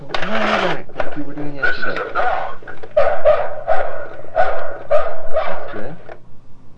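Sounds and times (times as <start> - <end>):
speech: 0.2 - 3.5
toy playing recorded dog barking: 2.1 - 5.7.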